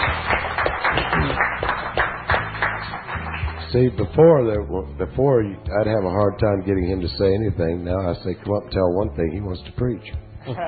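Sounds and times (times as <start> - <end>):
audience clapping: 0.0 - 4.0
speech: 3.7 - 10.6.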